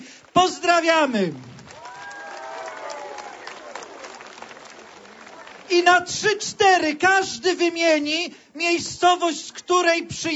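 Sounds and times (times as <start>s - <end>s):
large crowd clapping warmly: 0.0s - 6.4s
speech: 0.4s - 1.5s, 5.7s - 10.3s
voices cheering: 1.7s - 5.7s.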